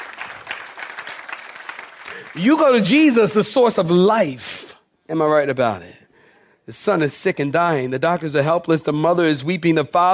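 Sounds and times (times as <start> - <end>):
audience clapping hands: 0.0 - 3.3
speech: 2.2 - 6.0, 6.7 - 10.1.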